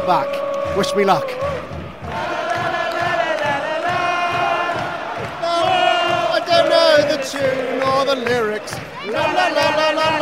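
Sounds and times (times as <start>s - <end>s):
speech: 0.0s - 1.8s, 7.2s - 10.2s
clapping: 2.0s - 10.2s.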